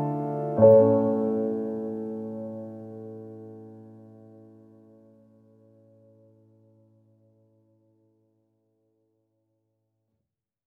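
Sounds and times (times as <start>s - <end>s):
sad piano music: 0.0s - 6.9s.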